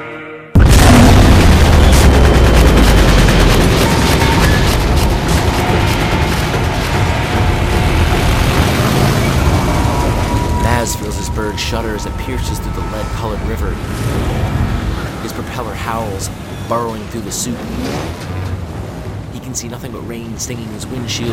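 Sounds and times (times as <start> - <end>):
anti-aircraft gunfire from hundreds of guns: 0.6 - 11.4
speech: 12.0 - 14.6, 15.3 - 18.4, 19.5 - 21.3.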